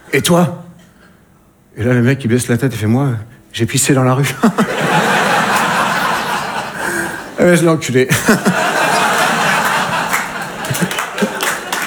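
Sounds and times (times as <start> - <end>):
speech: 0.1 - 0.6, 1.8 - 4.6, 7.4 - 9.0
scattered laughter: 4.4 - 7.4, 8.1 - 11.8
crowd murmur: 4.7 - 7.4, 8.4 - 11.8
audience applause: 4.8 - 7.4, 8.3 - 11.8.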